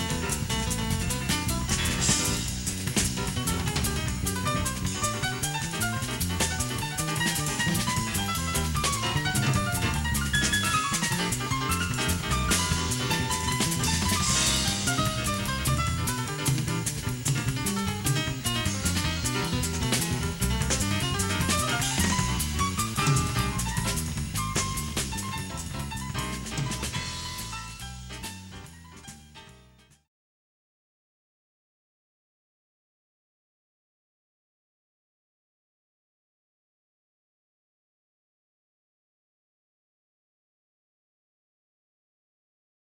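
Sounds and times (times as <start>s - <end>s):
jazz drums: 0.0s - 30.0s
jazz music: 0.0s - 30.0s.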